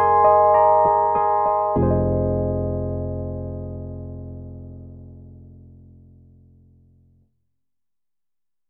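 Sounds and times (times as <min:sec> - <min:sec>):
soft Rhodes and Wurlitzer electric piano on synthesizer module: 0:00.0 - 0:05.9.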